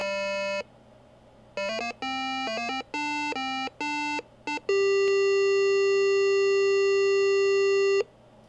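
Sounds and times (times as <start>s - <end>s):
PC speaker soundcard test intro tones: 1.6s - 8.1s.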